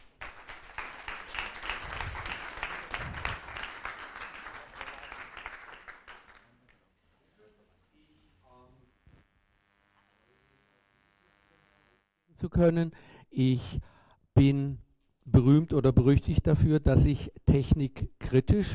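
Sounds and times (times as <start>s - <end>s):
audience applause: 0.0s - 6.6s
speech: 12.4s - 18.7s.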